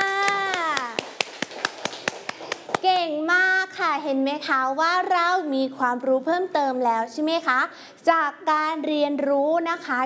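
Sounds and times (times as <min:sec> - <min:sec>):
children clapping for classmates in a class: 0:00.0 - 0:02.9
speech: 0:03.0 - 0:10.0.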